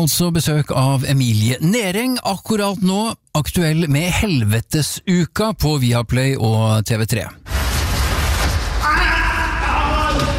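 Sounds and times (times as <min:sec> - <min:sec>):
speech: 0:00.0 - 0:07.6
person screaming: 0:08.8 - 0:10.3.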